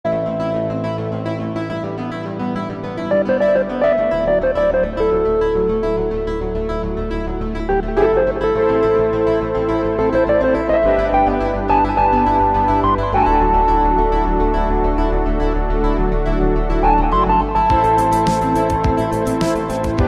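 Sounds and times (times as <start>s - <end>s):
Rhodes electric piano: 0.0s - 20.0s.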